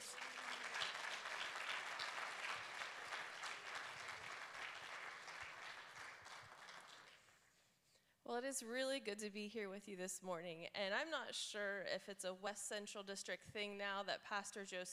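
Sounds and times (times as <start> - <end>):
crowd applauding: 0.0 - 7.4
speech: 8.3 - 14.9.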